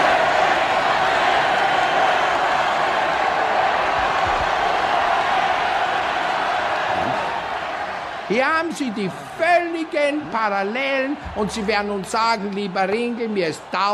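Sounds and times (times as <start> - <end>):
huge crowd cheering enthusiastically: 0.0 - 13.9
speech: 8.3 - 13.9.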